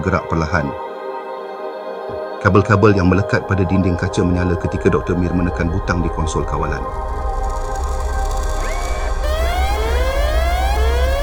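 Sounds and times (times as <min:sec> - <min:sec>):
speech: 0:00.0 - 0:00.9, 0:02.4 - 0:07.5
constant low rumble: 0:04.0 - 0:11.2
emergency alarm wailing: 0:05.3 - 0:11.2.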